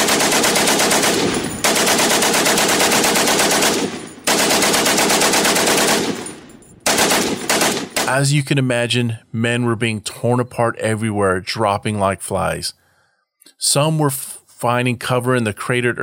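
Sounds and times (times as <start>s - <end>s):
machine gun fire: 0.0s - 8.2s
speech: 8.1s - 12.8s, 13.6s - 16.0s.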